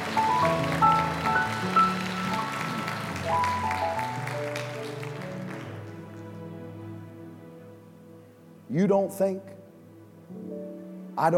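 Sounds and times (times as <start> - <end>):
crowd clapping: 0.0 - 6.6
keyboard or organ chords: 0.0 - 11.3
speech: 8.7 - 9.6, 11.2 - 11.3.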